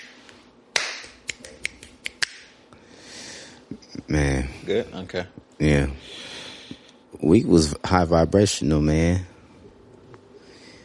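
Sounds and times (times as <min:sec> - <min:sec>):
sharp crisp claps: 0:00.0 - 0:02.5
soft steady hiss: 0:00.0 - 0:10.8
speech: 0:03.7 - 0:06.3, 0:07.2 - 0:09.3.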